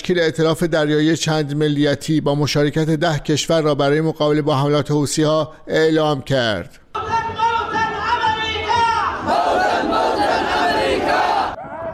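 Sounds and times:
speech: 0.1 - 6.8
militia parade crowd chanting: 7.0 - 11.9.

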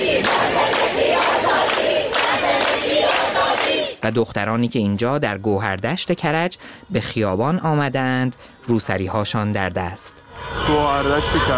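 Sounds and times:
protesters chanting slogans in Ekbatan, Tehran: 0.0 - 4.0, 6.8 - 11.5
speech: 4.0 - 11.5.

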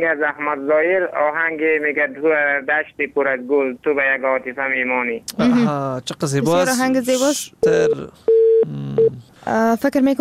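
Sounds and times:
speech: 0.0 - 10.2
phone line beeps after a call drops: 8.3 - 9.2.

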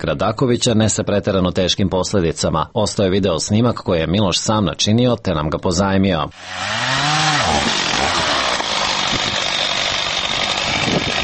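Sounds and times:
speech: 0.0 - 7.7
chainsaw cutting an apricot tree: 6.4 - 11.2.

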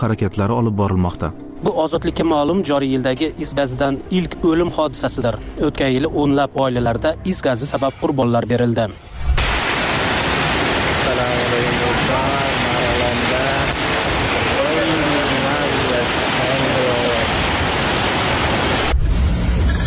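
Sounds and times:
speech: 0.0 - 9.4
floodwater rushing on roads after heavy rain in Namangan: 9.4 - 19.0.

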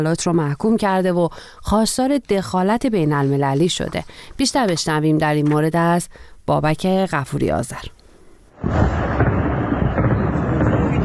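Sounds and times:
speech: 0.0 - 8.0, 8.6 - 9.4
anti-aircraft fire: 8.6 - 11.0
explosions: 8.6 - 11.0.

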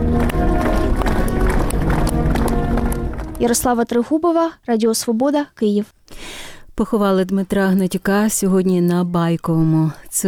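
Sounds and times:
large crowd applauding: 0.0 - 3.6
speech: 3.4 - 10.2.

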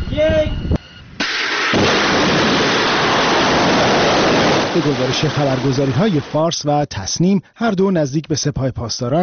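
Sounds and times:
speech: 0.2 - 0.6, 4.8 - 9.2
Emad missile launch roar: 1.2 - 6.4.

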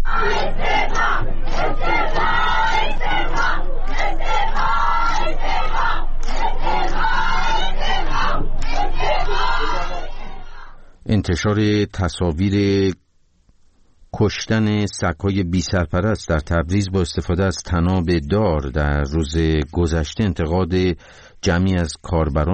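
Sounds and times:
protesters chanting slogans: 0.0 - 10.8
speech: 11.1 - 13.0, 14.2 - 22.5.

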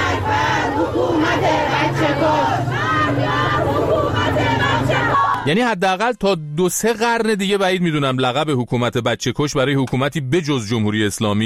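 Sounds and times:
low rumble: 0.0 - 5.4
protesters chanting slogans outside a ministry: 0.0 - 5.5
speech: 5.4 - 11.4.

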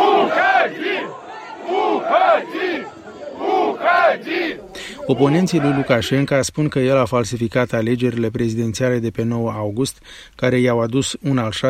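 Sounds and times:
workers shouting at Lukashenko: 0.0 - 6.2
speech: 5.1 - 11.6.

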